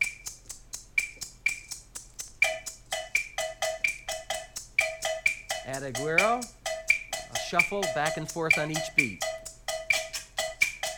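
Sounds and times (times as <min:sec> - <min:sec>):
maraca: 0:00.0 - 0:10.9
cowbell in a jazz rhythm: 0:02.4 - 0:10.9
speech: 0:05.7 - 0:06.6, 0:07.5 - 0:09.3.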